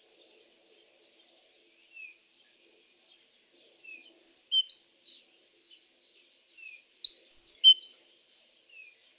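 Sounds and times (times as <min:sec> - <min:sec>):
Parus major great tit calls: 0:04.1 - 0:05.1, 0:06.6 - 0:08.0.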